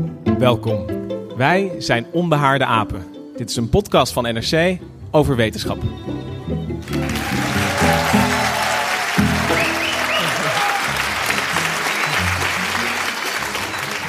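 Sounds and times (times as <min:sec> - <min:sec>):
speech: 0:00.0 - 0:07.2
live audience applause: 0:06.8 - 0:14.0
audience whistles: 0:09.4 - 0:10.9, 0:11.8 - 0:14.0.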